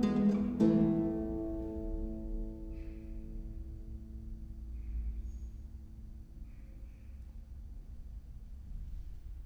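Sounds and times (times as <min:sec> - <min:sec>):
musical trio: 0:00.0 - 0:03.2.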